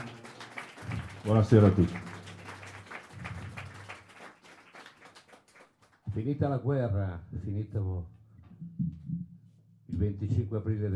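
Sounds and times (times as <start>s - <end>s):
crowd applauding: 0.0s - 6.1s
speech: 1.2s - 2.1s, 6.2s - 8.9s, 10.0s - 10.9s.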